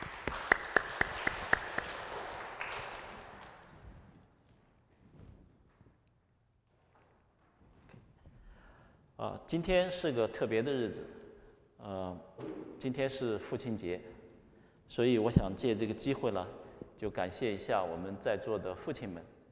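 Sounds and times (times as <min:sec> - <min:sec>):
audience applause: 0:00.0 - 0:03.5
speech: 0:09.2 - 0:11.2, 0:11.8 - 0:14.1, 0:14.9 - 0:19.4.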